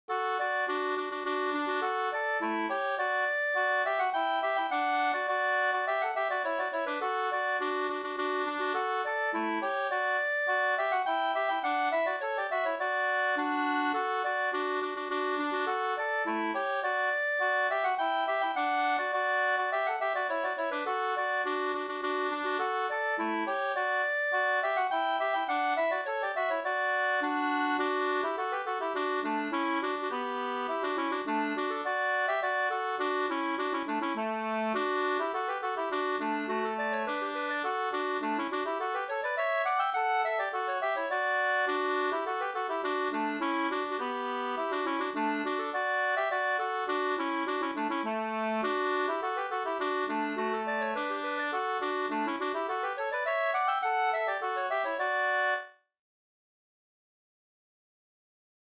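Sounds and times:
slangpolska folk dance tune: 0.1 - 55.7.

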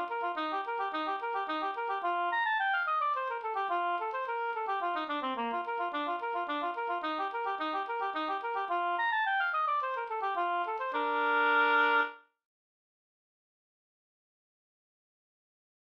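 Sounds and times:
polska folk tune: 0.0 - 12.2.

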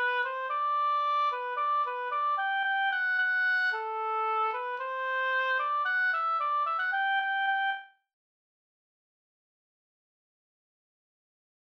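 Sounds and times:
polka music: 0.0 - 7.8.

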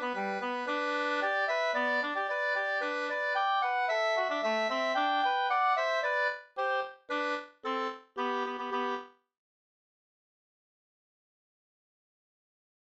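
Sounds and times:
polka music: 0.0 - 9.1.

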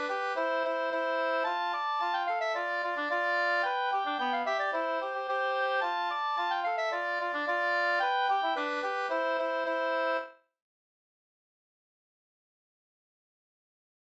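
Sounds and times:
polka: 0.0 - 10.4.

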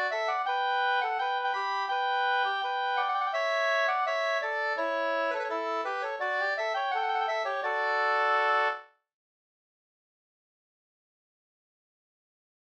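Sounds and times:
two-part wedding march from Jämtland: 0.0 - 8.8.

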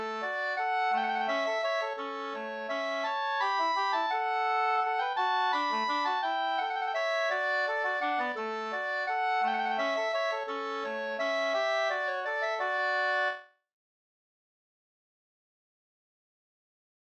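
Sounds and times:
waltz music: 0.0 - 13.4.

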